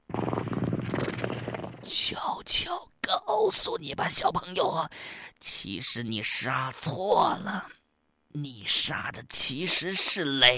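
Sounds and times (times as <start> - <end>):
throaty cat-like purr: 0.0 - 1.9
speech: 1.9 - 10.5.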